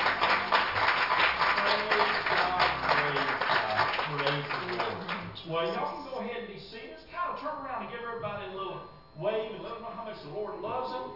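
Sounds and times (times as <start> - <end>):
audience hand clapping: 0.0 - 5.4
speech: 5.8 - 11.1.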